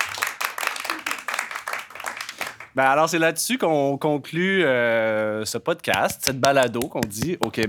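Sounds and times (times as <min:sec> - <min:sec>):
people clapping near microphones: 0:00.0 - 0:03.1, 0:05.9 - 0:07.6
speech: 0:02.8 - 0:07.6.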